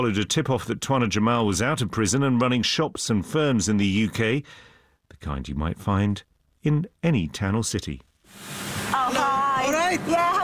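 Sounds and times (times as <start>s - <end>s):
speech: 0.0s - 8.6s, 9.2s - 10.4s
water spray hissing at a car wash in the north of England: 8.3s - 9.7s.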